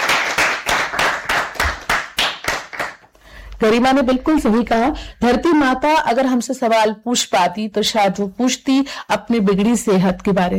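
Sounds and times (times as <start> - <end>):
children clapping: 0.0 - 3.1
speech: 3.6 - 10.5.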